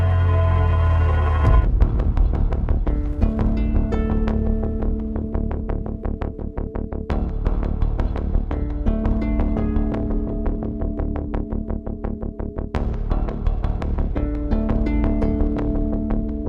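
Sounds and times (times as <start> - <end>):
sound effects: 0.0 - 2.0
synth bass: 0.0 - 16.4.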